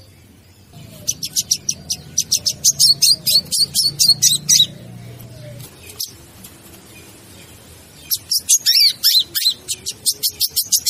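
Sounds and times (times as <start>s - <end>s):
faint low hum: 0.0s - 8.3s
bird chirping: 0.0s - 10.8s.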